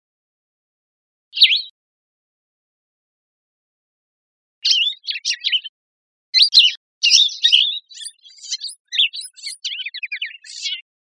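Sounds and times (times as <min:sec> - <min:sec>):
bird singing: 0:01.4 - 0:01.7, 0:04.6 - 0:05.7, 0:06.4 - 0:11.0.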